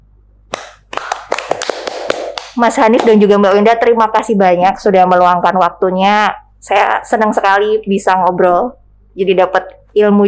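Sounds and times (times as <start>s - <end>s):
a few people clapping hands: 0.5s - 3.2s
speech: 2.6s - 10.2s.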